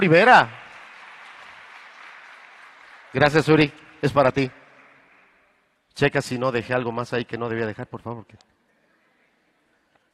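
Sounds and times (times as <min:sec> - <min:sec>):
speech: 0:00.0 - 0:00.6, 0:03.1 - 0:04.6, 0:06.0 - 0:08.6
classroom group clapping: 0:00.0 - 0:05.7.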